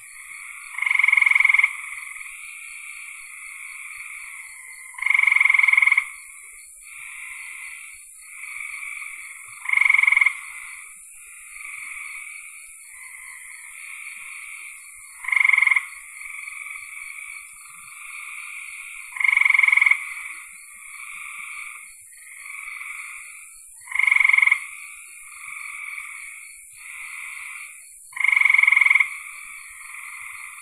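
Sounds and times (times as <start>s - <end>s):
frog chorus droning: 0.0s - 30.6s.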